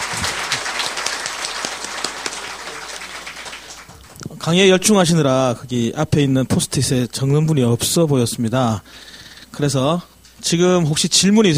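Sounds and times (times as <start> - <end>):
crowd applause: 0.0 - 4.2
speech: 4.4 - 11.5.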